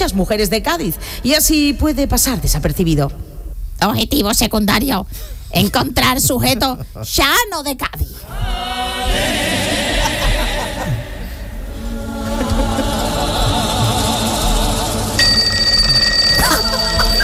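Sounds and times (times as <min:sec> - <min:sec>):
speech: 0:00.0 - 0:09.4
laughter: 0:06.3 - 0:07.1, 0:09.1 - 0:15.2, 0:16.4 - 0:17.2
alarm clock ringing: 0:15.2 - 0:17.2.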